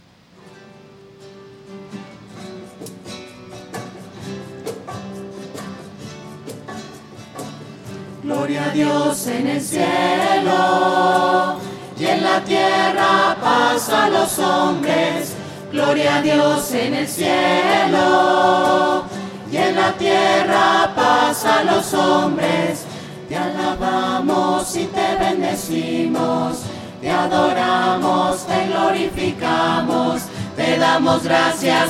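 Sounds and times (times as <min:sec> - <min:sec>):
voices singing: 0:08.2 - 0:31.8.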